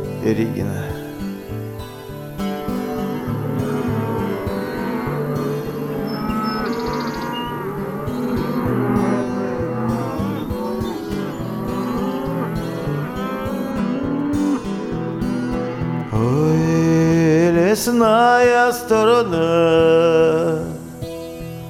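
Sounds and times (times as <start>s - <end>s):
speech: 0.2s - 0.9s, 17.8s - 20.7s
bulls bellowing on a Russian countryside pasture: 1.1s - 17.6s
cows mooing on a Russian countryside pasture: 2.3s - 17.7s.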